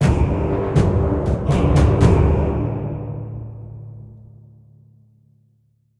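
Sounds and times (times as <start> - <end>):
battle lost music: 0.0 - 4.8.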